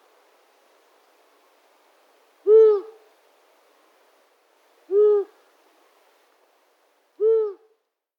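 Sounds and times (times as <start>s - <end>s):
long-eared owl Asio otus hooting: 2.4s - 3.0s, 4.9s - 5.4s, 7.2s - 7.7s.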